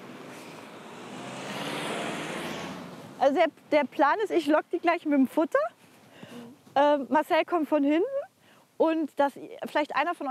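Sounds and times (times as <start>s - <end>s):
car approaching on village road: 0.0s - 3.8s
speech: 3.3s - 8.2s, 8.8s - 10.2s.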